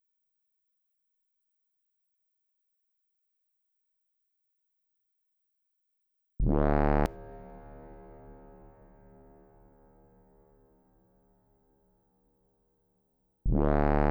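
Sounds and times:
bass: 0:06.4 - 0:10.1, 0:13.5 - 0:14.0.

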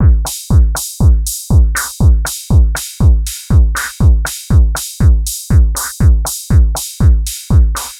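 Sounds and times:
120 BPM trance drum and percussion loop: 0:00.0 - 0:07.9.

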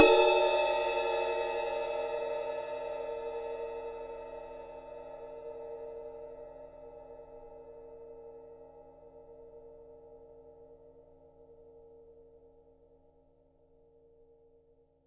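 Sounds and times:
51cm ride cymbal: 0:00.0 - 0:05.5.

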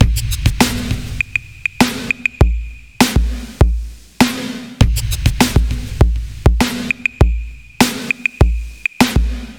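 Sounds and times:
beat: 0:00.0 - 0:09.5.

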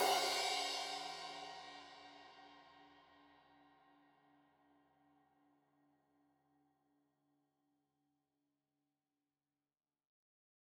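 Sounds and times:
15 inch crash cymbal edge hit: 0:00.0 - 0:01.8.

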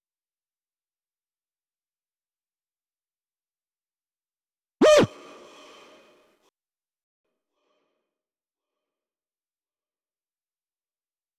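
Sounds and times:
vocal effects: 0:04.8 - 0:05.2.

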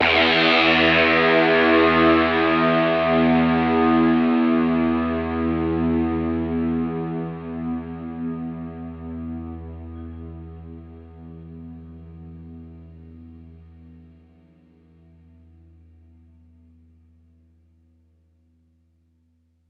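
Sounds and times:
guitar notes in E: 0:00.0 - 0:12.5.

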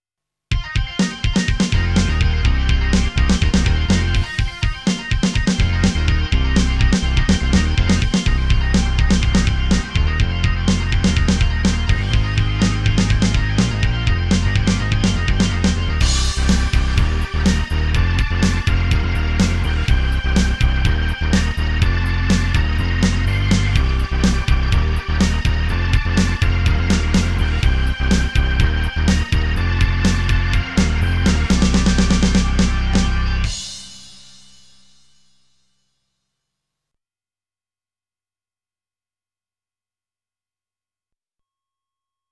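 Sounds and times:
Hammond B3 organ: 0:00.8 - 0:34.4.

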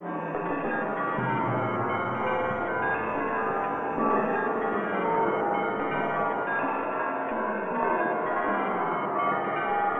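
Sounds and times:
chaotic bells cinematic drama soundbed: 0:00.3 - 0:09.9.

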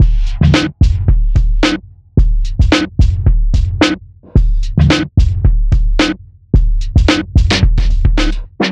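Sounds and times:
junk hip hop beat: 0:00.0 - 0:08.7.

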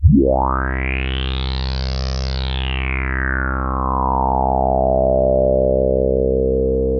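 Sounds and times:
TS10 analog synthesizer: 0:00.0 - 0:06.9.

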